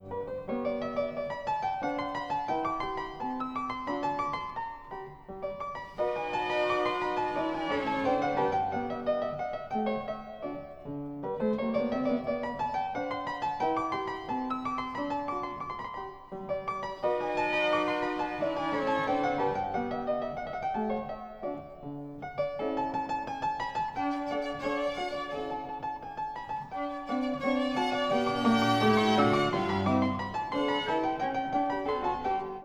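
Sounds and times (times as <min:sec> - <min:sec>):
piano concerto in G major allegretto: 0:00.0 - 0:32.6.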